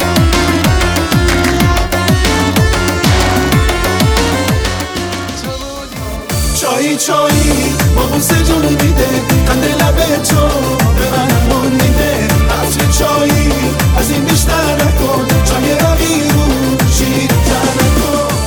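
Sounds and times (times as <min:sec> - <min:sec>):
Persian singer singing: 0:00.0 - 0:18.4.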